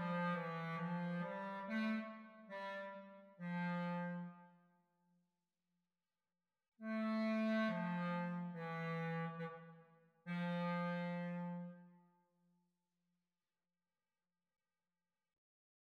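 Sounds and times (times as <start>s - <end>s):
clarinet duet: 0.0s - 4.3s, 6.9s - 9.6s, 10.3s - 11.8s.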